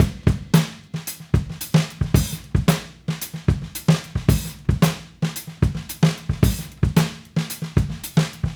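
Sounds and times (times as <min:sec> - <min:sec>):
70s analog funk drums: 0:00.0 - 0:08.5.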